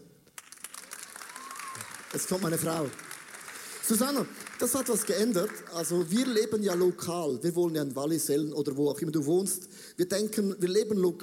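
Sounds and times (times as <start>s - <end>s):
audience applause: 0.4s - 7.0s
speech: 2.2s - 3.1s, 3.9s - 11.2s.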